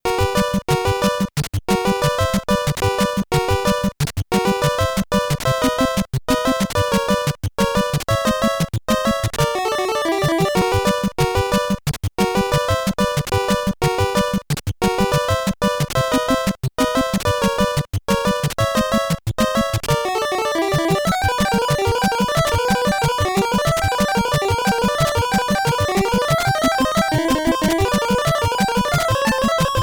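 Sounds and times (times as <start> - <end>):
NES bluegrass chiptune music: 0.0 - 29.8.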